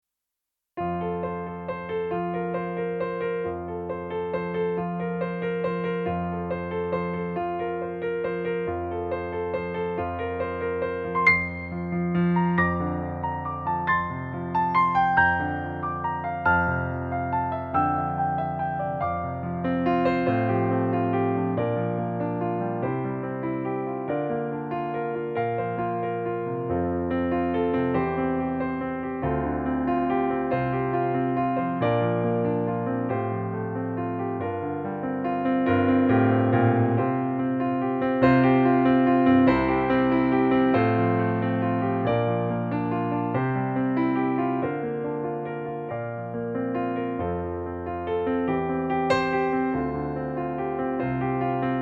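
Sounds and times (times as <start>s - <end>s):
piano accompaniment in F major: 0.8s - 51.8s.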